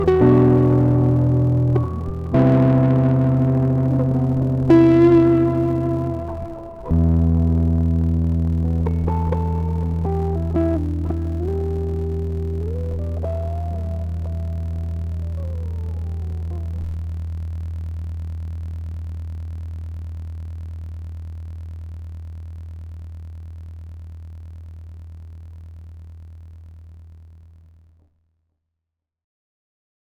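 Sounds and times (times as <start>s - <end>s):
guitar: 0.0s - 17.4s.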